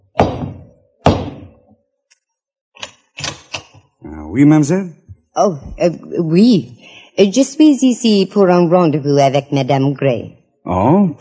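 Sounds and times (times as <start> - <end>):
huge heavy door knocker being whacked: 0.1 - 1.6
speech: 4.0 - 11.1.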